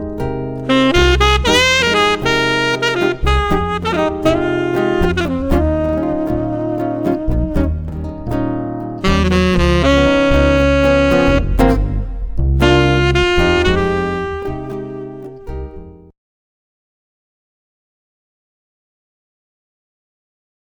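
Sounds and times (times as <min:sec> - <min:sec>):
jazz trio: 0:00.6 - 0:15.7.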